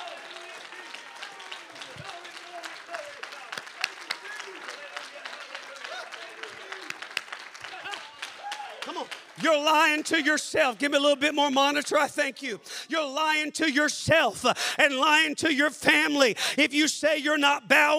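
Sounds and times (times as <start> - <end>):
people clapping hands in praise: 0.0 - 12.1
speech: 9.4 - 17.9.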